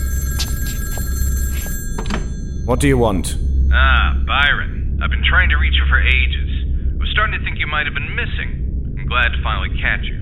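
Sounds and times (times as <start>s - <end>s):
telephone on a bedside table ringing: 0.0s - 3.7s
speech: 2.7s - 6.4s, 7.2s - 10.1s.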